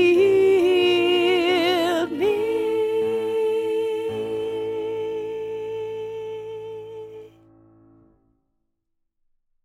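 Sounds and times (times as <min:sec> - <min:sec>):
alto voice singing a learning track: 0:00.0 - 0:07.5.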